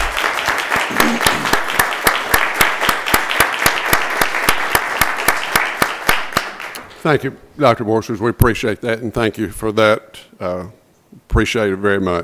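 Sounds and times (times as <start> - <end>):
audience applauding: 0.0 - 6.9
speech: 7.0 - 12.2.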